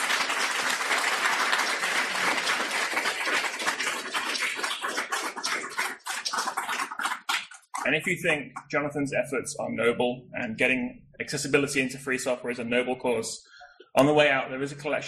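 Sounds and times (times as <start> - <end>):
audience applause: 0.0 - 7.8
speech: 7.9 - 15.0.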